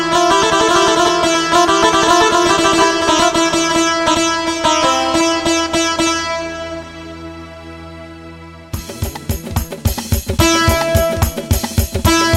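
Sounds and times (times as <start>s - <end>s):
ashig saz lute sound on an electronic organ: 0.0s - 7.8s, 10.4s - 12.3s.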